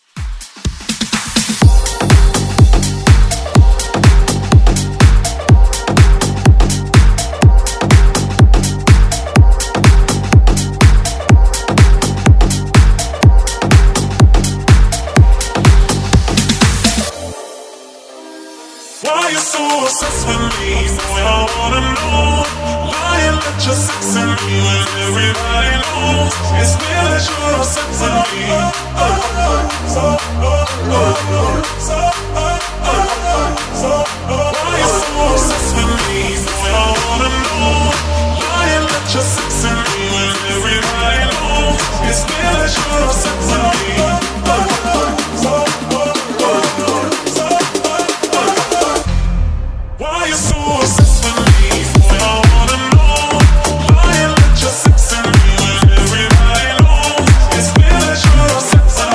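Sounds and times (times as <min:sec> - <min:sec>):
pop dance music: 0:00.0 - 0:59.1.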